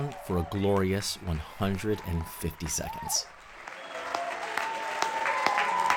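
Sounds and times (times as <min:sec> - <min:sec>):
theatre audience applause: 0:00.0 - 0:05.9
speech: 0:00.1 - 0:03.4.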